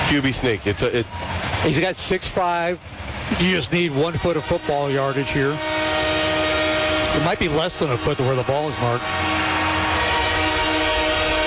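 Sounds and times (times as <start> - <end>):
train noise at a football game: 0.0 - 11.4
speech: 0.1 - 5.8, 7.2 - 9.4.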